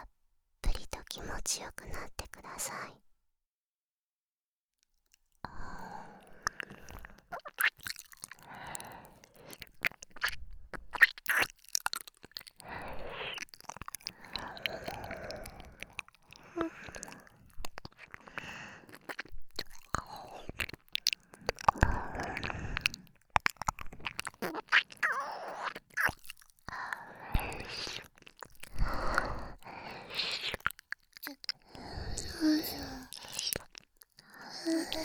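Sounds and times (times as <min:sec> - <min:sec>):
speech: 0:01.4 - 0:03.0
ear-licking ASMR wet mouth and licking sounds: 0:09.3 - 0:35.0.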